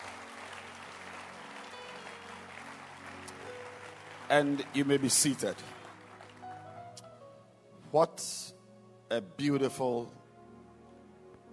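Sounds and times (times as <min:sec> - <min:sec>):
audience clapping: 0:00.0 - 0:07.1
speech: 0:04.3 - 0:05.8, 0:07.9 - 0:10.2.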